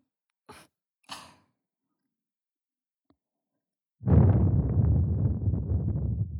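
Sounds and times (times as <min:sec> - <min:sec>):
blowing into ear: 0:04.1 - 0:06.3.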